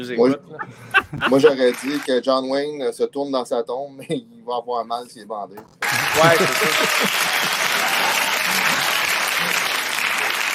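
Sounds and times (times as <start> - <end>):
speech: 0.0 - 7.6
laughter: 0.3 - 2.0, 5.8 - 9.9
crowd applause sound effect: 1.0 - 2.1, 5.8 - 10.5.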